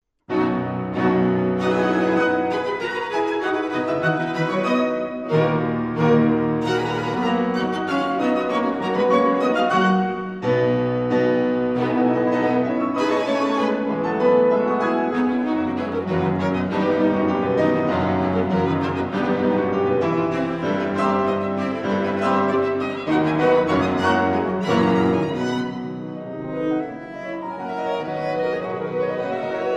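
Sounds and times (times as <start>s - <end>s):
piano quintet playing: 0.3s - 29.7s.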